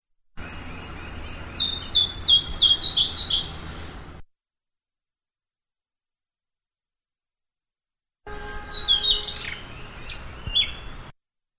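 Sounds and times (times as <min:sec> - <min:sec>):
blue-throated flycatcher song: 0:00.4 - 0:04.2, 0:08.3 - 0:11.1.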